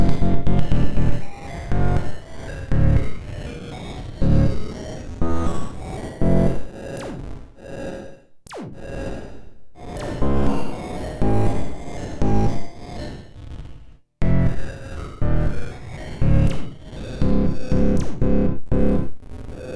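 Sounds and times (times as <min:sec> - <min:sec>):
beats: 0:00.0 - 0:02.1, 0:04.2 - 0:04.6, 0:05.2 - 0:05.6, 0:06.2 - 0:07.2, 0:10.0 - 0:12.6, 0:14.2 - 0:14.6, 0:16.2 - 0:19.2.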